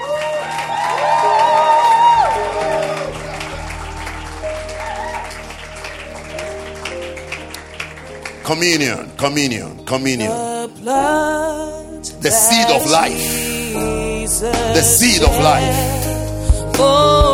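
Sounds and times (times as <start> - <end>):
audience clapping: 0.0 - 10.0
speech: 8.5 - 16.0, 16.8 - 17.3.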